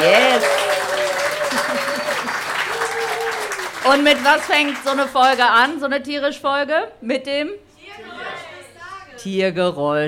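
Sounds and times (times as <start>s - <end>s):
live audience applauding and cheering: 0.0s - 5.4s
speech: 3.9s - 8.1s, 9.2s - 10.0s.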